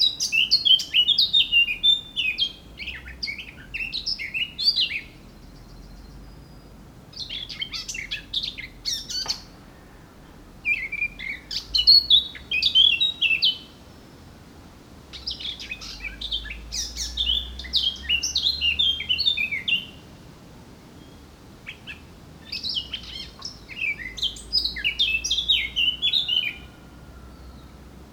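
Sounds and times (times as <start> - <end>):
Eurasian blackcap song: 0.0 - 28.1.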